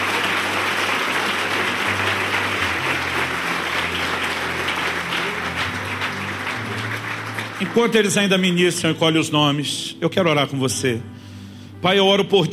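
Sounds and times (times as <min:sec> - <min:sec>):
audience applause: 0:00.0 - 0:09.1
speech: 0:07.6 - 0:11.2, 0:11.8 - 0:12.5.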